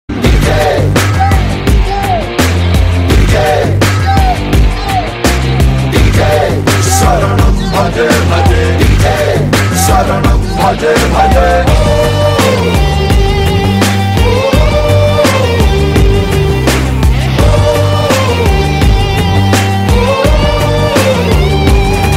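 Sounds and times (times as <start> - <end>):
DJ mix: 0.1 - 22.1.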